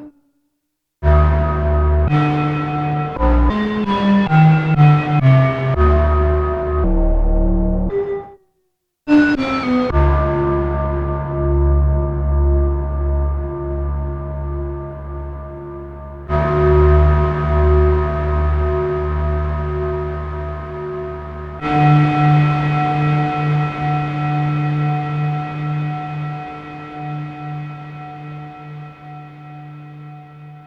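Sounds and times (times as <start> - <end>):
Korg DW-8000 synthesizer: 1.0 - 8.3, 9.3 - 30.6.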